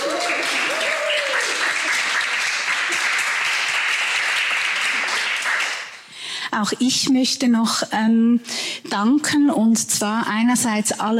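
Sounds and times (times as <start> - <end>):
audience applause: 0.0 - 6.1
speech: 6.6 - 11.1.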